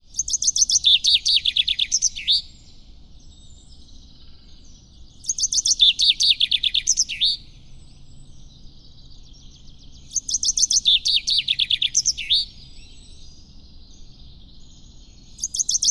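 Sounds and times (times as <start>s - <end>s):
common chaffinch song: 0.0s - 15.8s.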